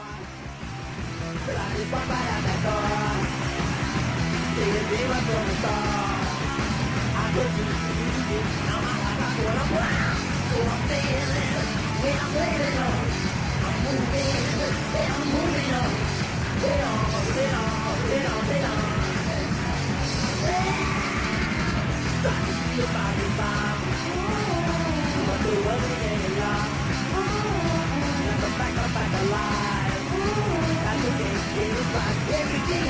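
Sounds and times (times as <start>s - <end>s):
fast band song from a cassette: 0.0s - 32.8s
shouted vocals: 1.3s - 32.8s.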